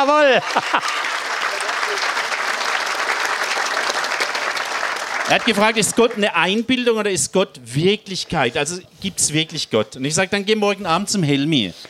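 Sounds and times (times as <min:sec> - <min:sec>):
speech: 0:00.0 - 0:01.1, 0:01.8 - 0:02.4, 0:05.3 - 0:11.8
laughter: 0:00.0 - 0:02.8, 0:05.3 - 0:06.6
audience clapping: 0:00.0 - 0:06.7.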